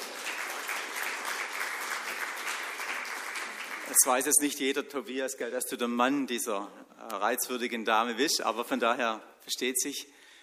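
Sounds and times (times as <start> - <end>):
audience clapping: 0.0 - 4.6
speech: 3.9 - 10.2.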